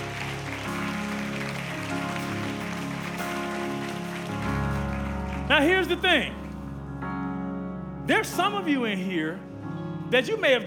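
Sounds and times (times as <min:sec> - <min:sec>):
crowd clapping: 0:00.0 - 0:06.7
sustained keyboard chords: 0:00.0 - 0:10.6
speech: 0:05.5 - 0:06.4, 0:08.1 - 0:09.5, 0:10.1 - 0:10.6.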